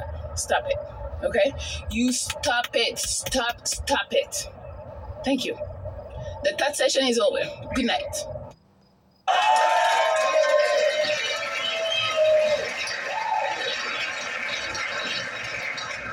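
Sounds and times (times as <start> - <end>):
speech: 0.4 - 4.6, 5.2 - 5.7, 6.4 - 8.3
round of applause: 9.3 - 16.1.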